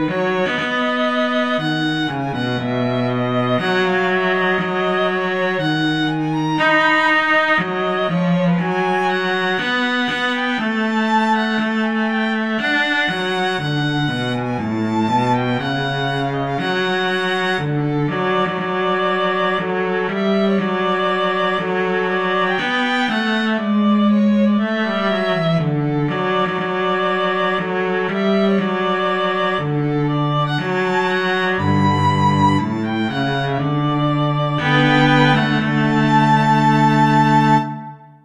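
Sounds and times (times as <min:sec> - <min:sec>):
violin and cello duet: 0:00.0 - 0:38.2.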